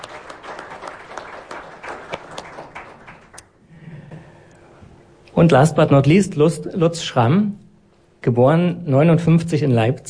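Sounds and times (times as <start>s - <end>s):
audience applause: 0.0s - 3.6s
speech: 5.4s - 7.6s, 8.2s - 10.0s.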